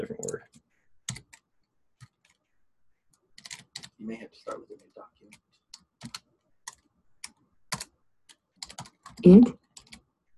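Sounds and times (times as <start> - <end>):
typing on a computer keyboard: 0.2 - 2.4, 3.4 - 10.1
speech: 4.0 - 5.5, 9.2 - 9.6.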